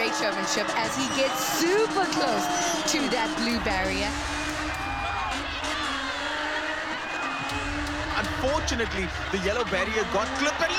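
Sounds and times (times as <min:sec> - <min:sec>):
crowd cheering at motorsport event: 0:00.0 - 0:10.7
speech: 0:00.2 - 0:04.4, 0:08.2 - 0:10.7
engine revving at motorsport event: 0:01.8 - 0:10.7.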